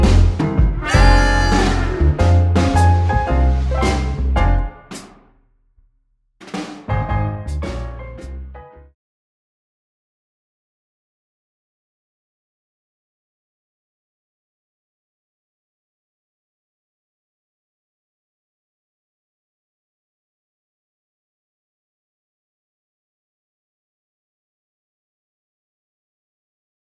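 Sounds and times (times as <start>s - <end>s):
modern vintage swing band playing: 0.0s - 5.2s, 6.4s - 8.4s.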